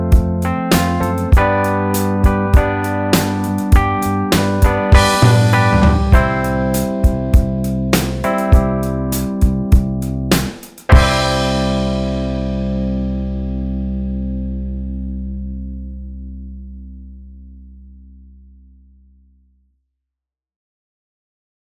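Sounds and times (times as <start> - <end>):
slide backing track: 0.0 - 14.4.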